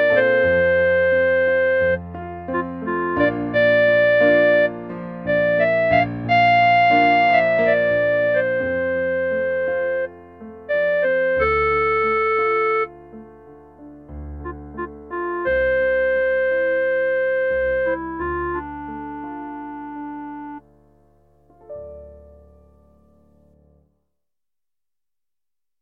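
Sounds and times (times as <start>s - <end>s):
clarinet: 0.0s - 13.2s, 14.1s - 20.6s.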